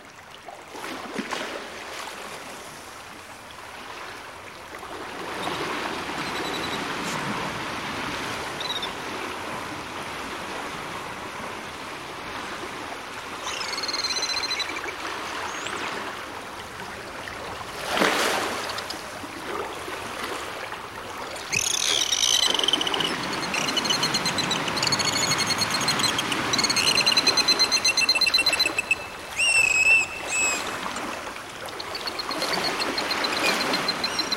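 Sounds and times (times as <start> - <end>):
sea waves: 0.0 - 34.3
dolphins clicking: 18.5 - 19.2, 21.4 - 31.0.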